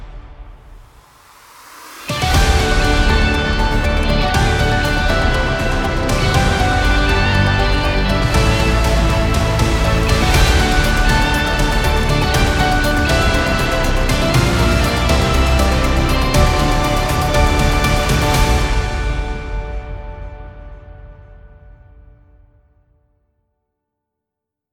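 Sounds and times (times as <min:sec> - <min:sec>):
upbeat news music for sport and politics: 0:02.1 - 0:20.0.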